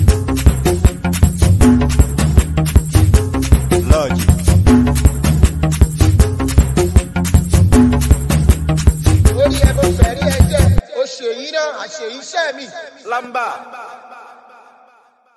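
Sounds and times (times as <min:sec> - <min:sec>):
professional dance beat: 0:00.0 - 0:10.8.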